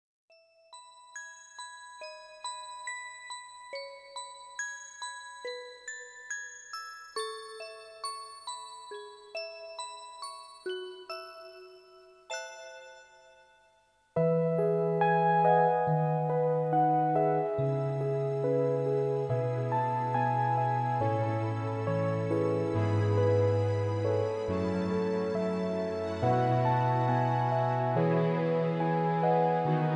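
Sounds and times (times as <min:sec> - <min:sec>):
backing track music: 0:14.2 - 0:29.9.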